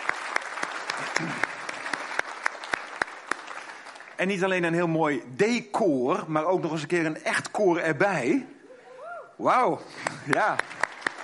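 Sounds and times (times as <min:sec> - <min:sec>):
applause: 0:00.0 - 0:04.8, 0:10.0 - 0:11.2
speech: 0:04.2 - 0:08.6, 0:09.4 - 0:10.8.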